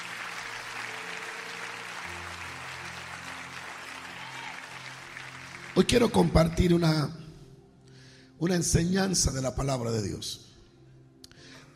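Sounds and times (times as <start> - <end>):
audience applause: 0.0 - 6.5
speech: 5.8 - 7.2, 8.4 - 10.5.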